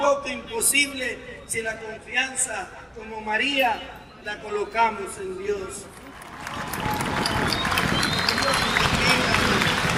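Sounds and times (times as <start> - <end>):
speech: 0.0 - 6.8
audience applause: 6.1 - 9.9.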